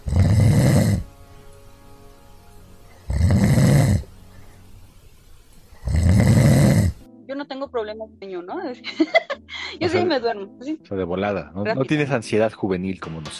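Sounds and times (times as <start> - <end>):
person imitating loud snoring: 0.0 - 1.0, 3.1 - 4.1, 5.8 - 7.0
speech: 7.5 - 13.3.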